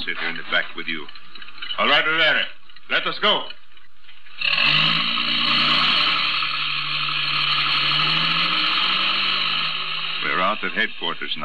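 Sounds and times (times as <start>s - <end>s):
speech: 0.0s - 1.2s, 1.8s - 3.6s, 10.4s - 11.4s
truck engine starting and driving: 4.3s - 11.4s.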